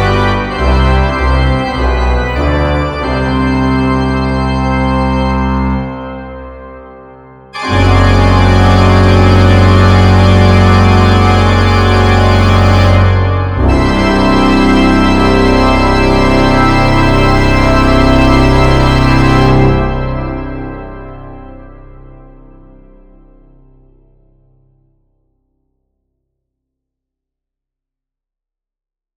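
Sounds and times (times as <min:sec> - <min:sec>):
eight software organs playing simultaneously: 0:00.0 - 0:07.0, 0:07.6 - 0:22.6.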